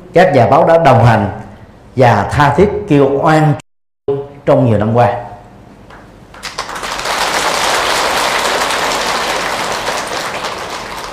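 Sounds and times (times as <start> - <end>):
speech: 0.1 - 1.4, 2.0 - 5.2
audience applause: 6.3 - 11.1.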